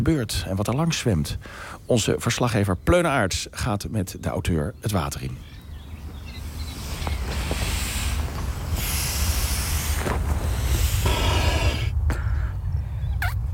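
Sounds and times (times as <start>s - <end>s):
speech: 0.0s - 5.6s
steady wind noise: 5.3s - 13.5s
person blowing air into a swim buoy by mouth: 6.7s - 12.0s.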